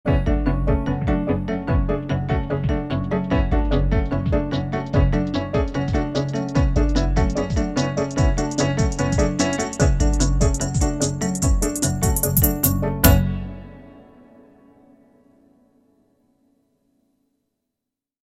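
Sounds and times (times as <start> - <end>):
minimal advertising music: 0.1 - 14.0.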